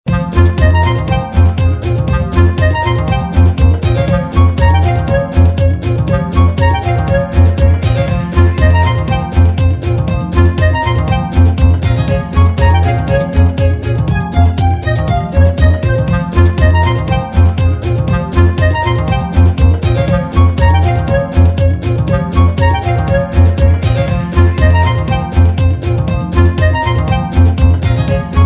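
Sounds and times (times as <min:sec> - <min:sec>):
clarinet: 0:00.1 - 0:28.4.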